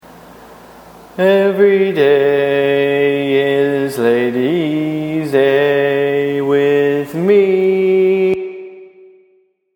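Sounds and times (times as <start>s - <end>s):
barbershop bass singing tags: 1.2s - 8.4s.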